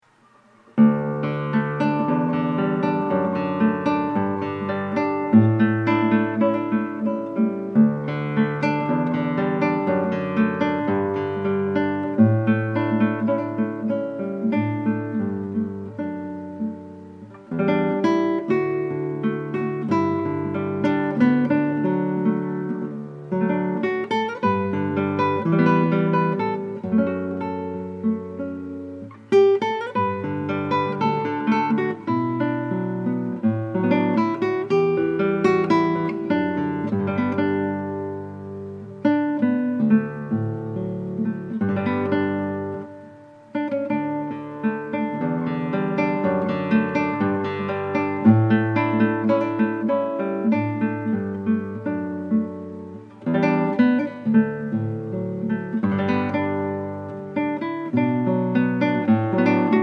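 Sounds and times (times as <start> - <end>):
acoustic guitar: 0.0 - 59.8.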